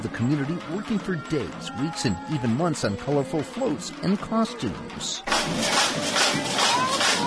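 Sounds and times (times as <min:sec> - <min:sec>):
speech: 0:00.1 - 0:06.6
crowd at the Santa Barbara Summer Solstice Parade: 0:00.1 - 0:07.2.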